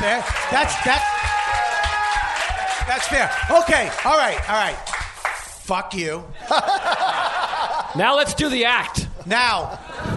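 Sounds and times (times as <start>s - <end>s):
speech: 0.0s - 1.4s, 2.9s - 5.0s, 5.7s - 7.1s, 8.0s - 9.8s
audience applause: 0.0s - 5.4s
laughter: 6.4s - 8.0s, 9.2s - 10.1s.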